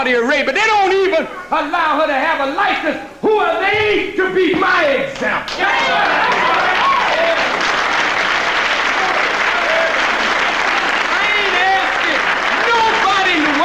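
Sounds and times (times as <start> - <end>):
speech: 0.0 - 6.6
cheers and shouting voices: 4.7 - 7.8, 8.8 - 13.6
large audience applause: 5.5 - 13.6.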